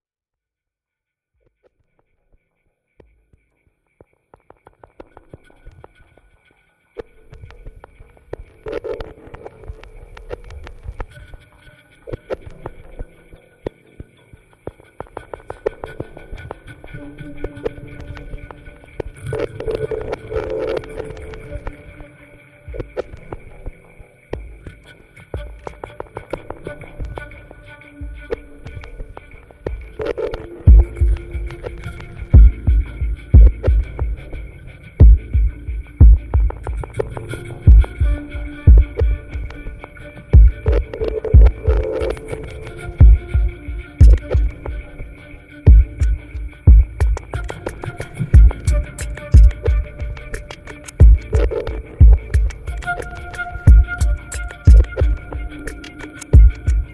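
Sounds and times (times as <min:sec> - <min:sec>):
flute: 0:15.5 - 0:56.9.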